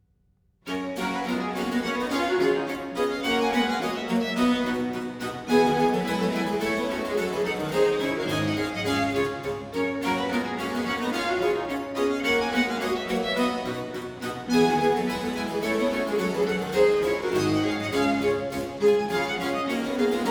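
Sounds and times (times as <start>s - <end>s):
two violins viola and basso continuo playing a suite in G major: 0.7s - 20.2s.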